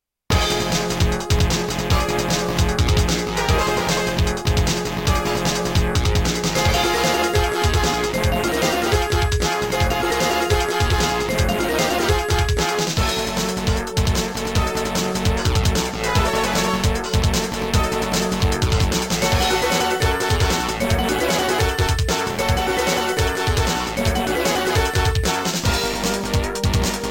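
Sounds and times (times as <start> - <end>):
music: 0.3 - 27.1.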